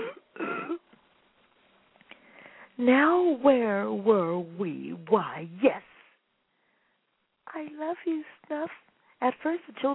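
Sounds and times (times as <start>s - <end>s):
person clearing throat: 0.0s - 0.8s
speech: 2.8s - 5.9s, 7.6s - 9.9s.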